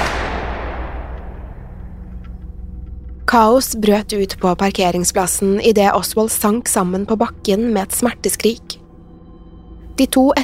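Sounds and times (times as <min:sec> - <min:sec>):
pistol gunshot: 0:00.0 - 0:02.0
speech: 0:03.3 - 0:08.8, 0:10.0 - 0:10.4.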